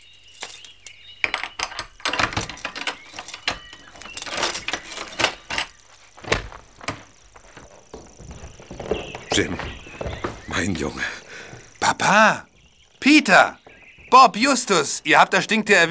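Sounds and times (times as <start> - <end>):
metal keys jingling: 0.0 - 7.6
lock rattling and scraping as a door is unlocked: 0.0 - 10.5
speech: 9.4 - 9.8, 10.6 - 11.2, 11.9 - 15.9.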